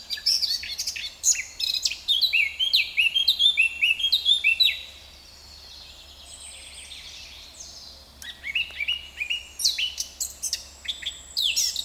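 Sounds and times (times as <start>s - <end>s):
Eurasian blackcap singing: 0.0s - 4.9s, 8.2s - 11.8s.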